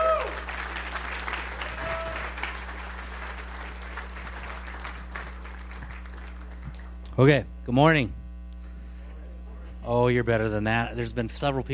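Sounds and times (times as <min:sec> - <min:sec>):
audience applause: 0:00.0 - 0:07.0
speech: 0:07.2 - 0:08.2, 0:09.9 - 0:11.7.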